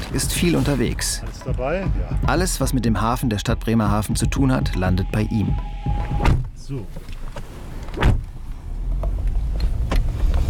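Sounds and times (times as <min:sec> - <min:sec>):
car engine rumble as car drives off from a harbour parking lot: 0:00.0 - 0:10.4
speech: 0:00.1 - 0:08.2
sharp thump: 0:05.9 - 0:06.6, 0:08.0 - 0:08.3.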